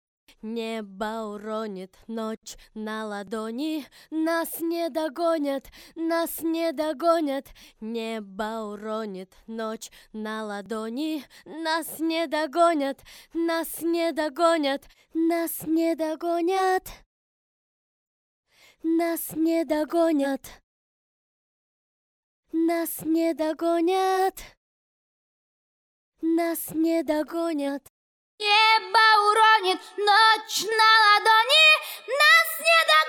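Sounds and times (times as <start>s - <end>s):
a cappella singing: 0.5s - 16.8s, 18.9s - 20.4s, 22.6s - 24.4s, 26.2s - 33.0s.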